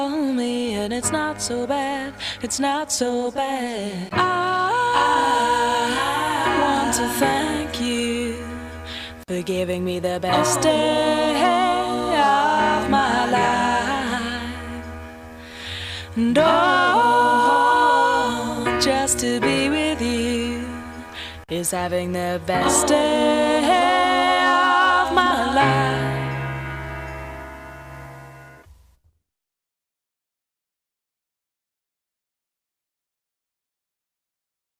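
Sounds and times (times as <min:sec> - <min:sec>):
a cappella singing in a studio: 0:00.0 - 0:08.6, 0:09.3 - 0:14.8, 0:16.1 - 0:20.9, 0:21.5 - 0:26.5.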